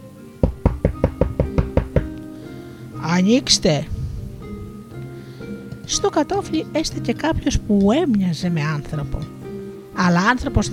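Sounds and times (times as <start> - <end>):
knocking on a door: 0.4 - 2.2
speech: 3.1 - 4.0, 5.9 - 9.4, 10.0 - 10.7.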